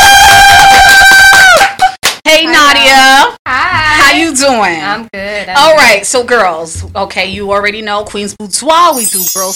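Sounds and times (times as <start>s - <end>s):
people clapping: 0.1s - 3.1s
speech: 4.4s - 9.5s.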